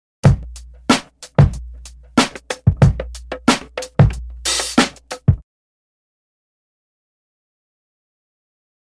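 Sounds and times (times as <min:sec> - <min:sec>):
drum loop: 0:00.2 - 0:05.4.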